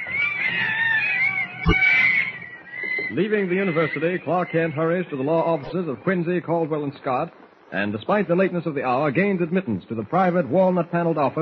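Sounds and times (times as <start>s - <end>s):
monkeys chattering and screeching: 0.0s - 6.3s
speech: 1.6s - 2.1s, 3.1s - 11.4s.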